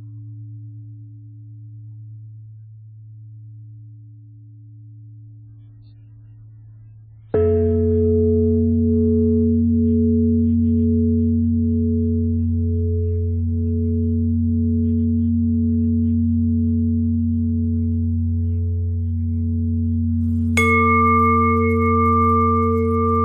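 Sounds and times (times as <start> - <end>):
bells: 7.4 - 23.2.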